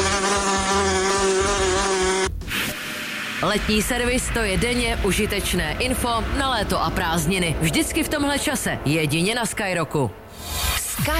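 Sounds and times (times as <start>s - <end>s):
wasp buzzing: 0.0s - 2.3s
short hiss of noise: 2.5s - 4.1s
speech: 3.4s - 10.2s.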